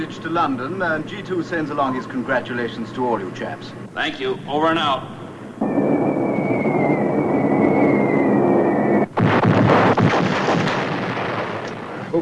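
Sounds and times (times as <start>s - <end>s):
speech: 0.0s - 5.2s
loud continuous droning rumble of a bombing raid: 5.0s - 12.2s
distant explosions from an 8th Air Force bombing raid on a ball-bearing factory: 5.6s - 12.2s
sharp crackling blasts from a bombing raid: 5.6s - 12.2s.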